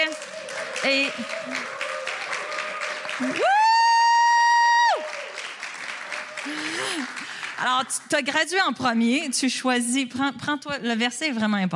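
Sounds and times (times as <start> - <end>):
audience applause: 0.0 - 8.4
speech: 0.8 - 1.8, 3.2 - 3.6, 7.6 - 11.7.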